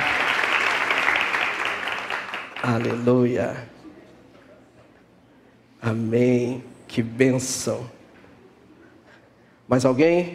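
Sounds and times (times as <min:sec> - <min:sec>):
audience applause: 0:00.0 - 0:03.0
speech: 0:02.6 - 0:03.8, 0:05.8 - 0:08.0, 0:09.7 - 0:10.3.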